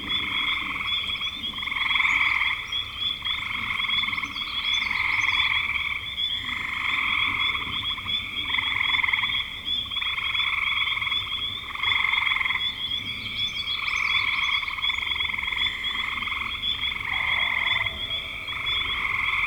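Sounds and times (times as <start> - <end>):
many frogs trilling together: 0.0 - 19.4.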